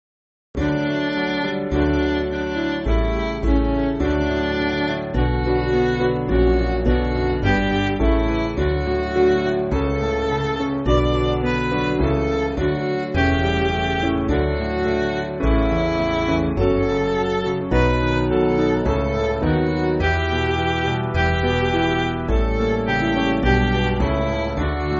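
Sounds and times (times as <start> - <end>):
MIDI church backing music: 0.6 - 24.9.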